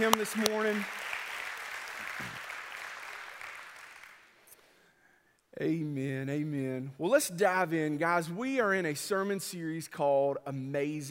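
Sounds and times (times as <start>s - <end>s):
speech: 0.0s - 1.0s, 5.6s - 11.0s
audience applause: 0.0s - 4.3s.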